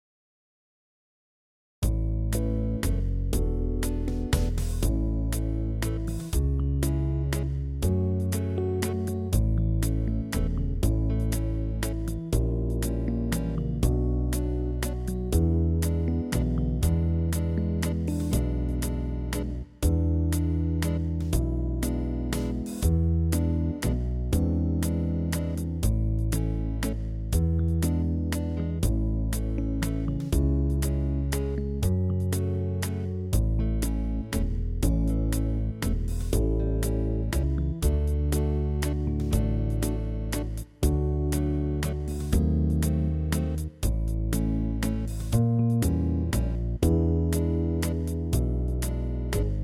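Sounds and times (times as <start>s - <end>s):
festival waltz music: 1.9s - 49.6s.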